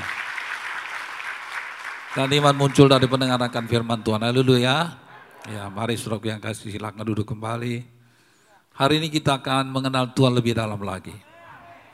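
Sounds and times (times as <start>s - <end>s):
audience applauding: 0.0s - 4.3s
speech: 2.1s - 8.0s, 8.8s - 11.3s.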